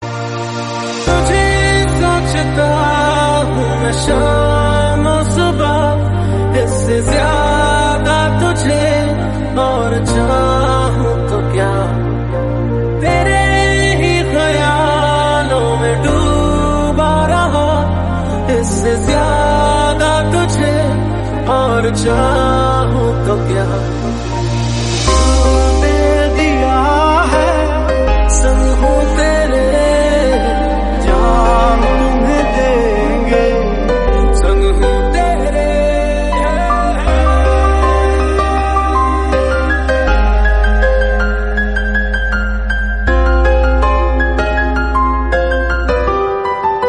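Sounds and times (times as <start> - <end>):
romantic mashup tone: 0.0 - 46.8.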